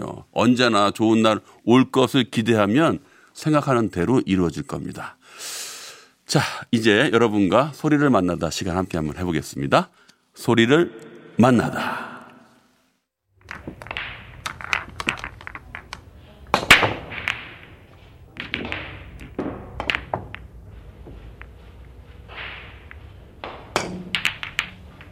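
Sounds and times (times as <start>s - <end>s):
speech: 0.0s - 5.6s, 6.3s - 12.1s
billiard balls being struck: 13.4s - 25.1s.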